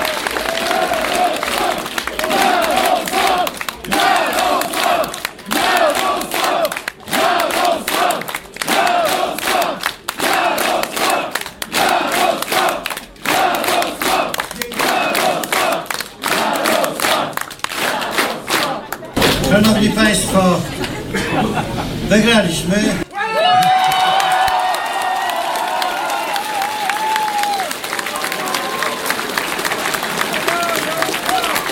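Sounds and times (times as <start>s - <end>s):
crowd cheering at PiS party election headquarters: 0.0s - 31.7s
laughter: 20.4s - 22.2s.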